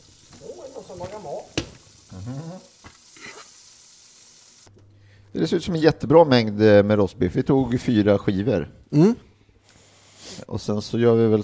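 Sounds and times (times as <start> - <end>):
butter sizzling in a frying pan: 0.0 - 4.7
speech: 0.8 - 2.8, 5.4 - 9.3, 10.2 - 11.4.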